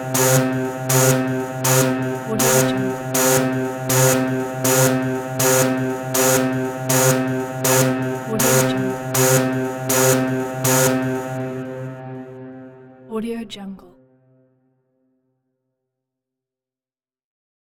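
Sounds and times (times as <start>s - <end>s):
futuristic industrial security alarm: 0.0s - 13.1s.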